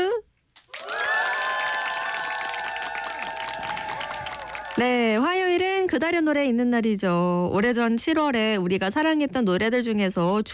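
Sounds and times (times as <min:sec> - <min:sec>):
crowd cheering: 0:00.6 - 0:05.1
applause: 0:00.6 - 0:05.8
speech: 0:04.8 - 0:10.5.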